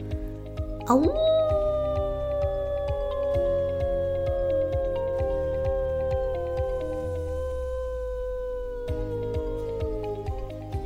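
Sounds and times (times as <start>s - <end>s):
two-month-old young wolf howling: 0.8s - 10.8s
speech: 0.9s - 1.3s.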